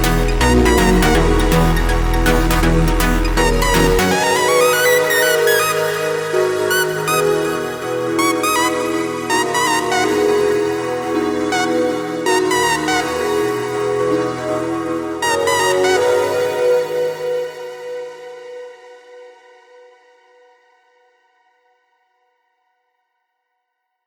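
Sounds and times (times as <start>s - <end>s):
instrumental music: 0.0s - 18.3s.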